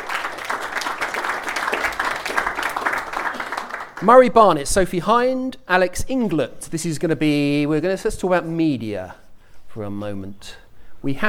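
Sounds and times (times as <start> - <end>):
audience applause: 0.0 - 4.1
speech: 4.0 - 9.2, 9.8 - 11.2.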